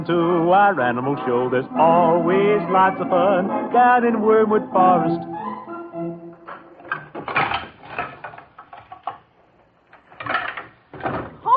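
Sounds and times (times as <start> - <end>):
speech: 0.0 - 5.4
piano being moved upstairs: 4.8 - 9.1.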